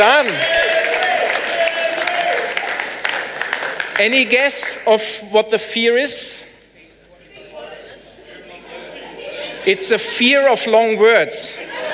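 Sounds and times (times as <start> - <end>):
faint sustained voice or cheer: 0.0 - 2.9
audience applause: 0.0 - 4.4
speech: 4.0 - 6.5, 9.6 - 11.8
laughter: 8.0 - 10.7, 11.5 - 11.9.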